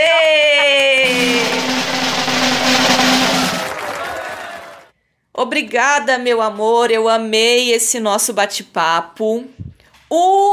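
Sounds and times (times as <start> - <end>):
applause: 0.0 - 4.9
speech: 5.5 - 10.5.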